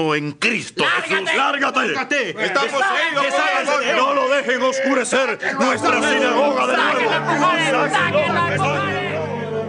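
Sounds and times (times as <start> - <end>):
speech: 0.0 - 9.1
crowd shouting with joy: 2.4 - 9.5.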